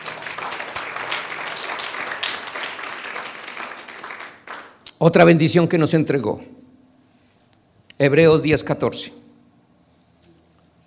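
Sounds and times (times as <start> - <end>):
church congregation applauding during a sermon: 0.0 - 4.9
speech: 5.0 - 6.6, 8.0 - 9.2.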